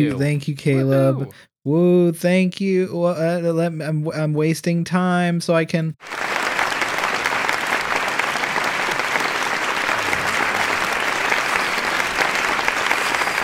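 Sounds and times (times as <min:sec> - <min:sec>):
speech: 0:00.0 - 0:06.3
applause sound clip: 0:06.0 - 0:13.4.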